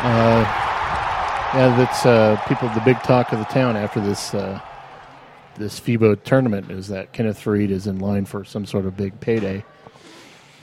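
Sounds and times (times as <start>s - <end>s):
speech: 0.0s - 0.7s, 1.5s - 4.7s, 5.6s - 10.1s
crowd cheering: 0.0s - 5.7s.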